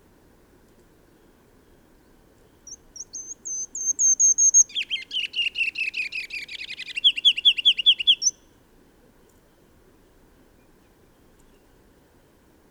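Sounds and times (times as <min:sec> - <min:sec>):
bird singing bright down-slurred chirped notes: 0:02.6 - 0:08.4.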